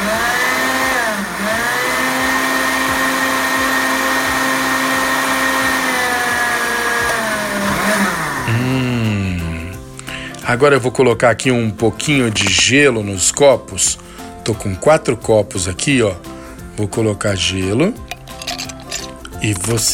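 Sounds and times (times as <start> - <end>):
blender blending mint, cucumber and lemon: 0.0 - 10.5, 12.1 - 12.8, 18.2 - 19.8
speech: 10.5 - 18.1, 19.4 - 19.9.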